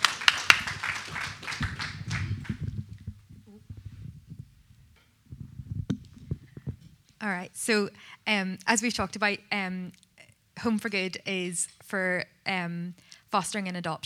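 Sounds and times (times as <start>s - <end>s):
audience clapping: 0.0s - 3.2s
speech: 7.2s - 10.0s, 10.6s - 14.0s.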